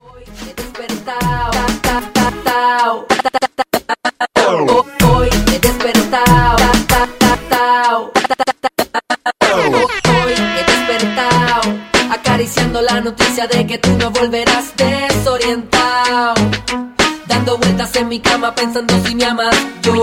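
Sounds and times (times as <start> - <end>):
reggaeton mix: 0.0 - 20.0.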